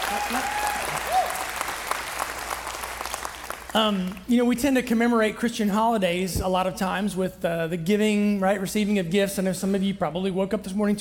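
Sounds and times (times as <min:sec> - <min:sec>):
audience applause: 0:00.0 - 0:04.2
speech: 0:03.7 - 0:10.9.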